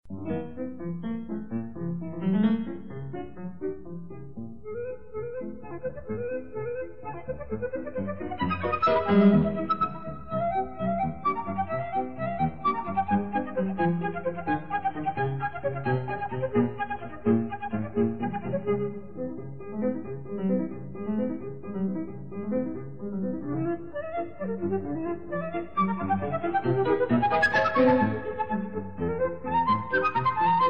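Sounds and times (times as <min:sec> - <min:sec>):
piano in D major: 0:00.0 - 0:30.6
flute in D major: 0:04.6 - 0:30.6.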